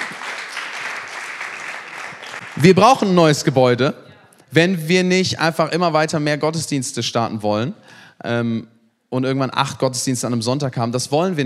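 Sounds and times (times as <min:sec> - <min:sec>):
church congregation applauding God during a service: 0:00.0 - 0:03.2
speech: 0:02.6 - 0:11.4.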